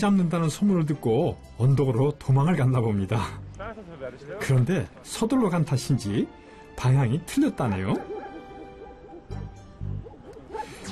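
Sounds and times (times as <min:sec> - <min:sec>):
speech: 0:00.0 - 0:08.2
sheepdogs barking: 0:07.8 - 0:10.9.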